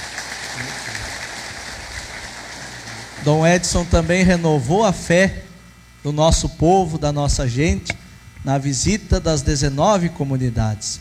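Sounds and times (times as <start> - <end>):
audience applauding: 0.0 - 4.4
speech: 3.2 - 10.9.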